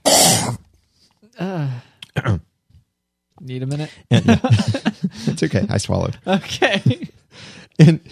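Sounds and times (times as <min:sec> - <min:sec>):
person imitating a loud cough into hands: 0:00.0 - 0:00.6
speech: 0:03.5 - 0:04.8, 0:05.4 - 0:07.1, 0:07.8 - 0:08.1
laughter: 0:04.1 - 0:05.7, 0:06.4 - 0:07.2.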